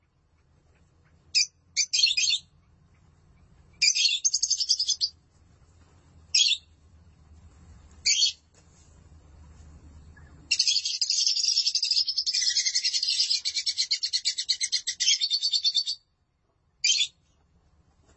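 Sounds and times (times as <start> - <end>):
lovebird chattering: 1.3 - 2.6, 3.8 - 5.1, 6.3 - 6.7, 8.0 - 8.4, 10.2 - 16.0, 16.8 - 17.2.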